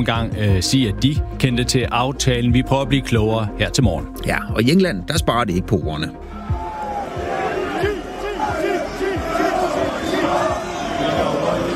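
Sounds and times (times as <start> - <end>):
speech: 0.0 - 6.3
football fans chanting: 6.4 - 11.7.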